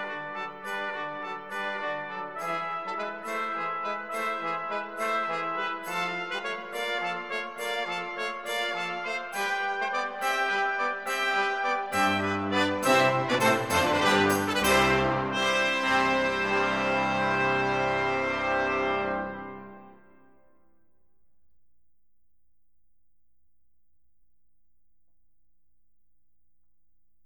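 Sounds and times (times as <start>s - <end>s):
brass ensemble playing a battle corranto: 0.0s - 20.5s.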